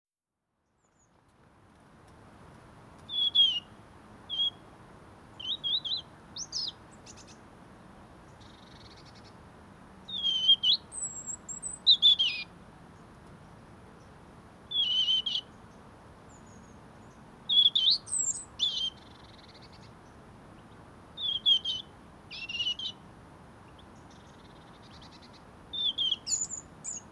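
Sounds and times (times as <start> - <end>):
low noise: 0.5 - 27.1
European robin whistling calls: 3.1 - 4.6, 5.3 - 7.4, 10.0 - 12.5, 14.7 - 15.6, 16.3 - 19.9, 20.6 - 23.0, 23.7 - 27.1.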